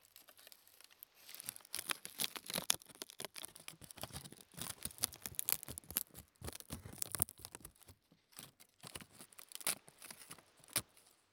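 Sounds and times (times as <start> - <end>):
dry crisp sheets of nori seaweed tearing and crunching: 0.0 - 11.0.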